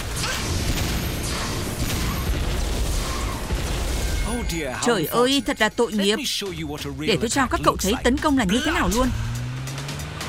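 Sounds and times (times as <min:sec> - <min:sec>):
animated green laser blast in a cartoon battle: 0:00.0 - 0:04.4
speech: 0:04.4 - 0:09.3.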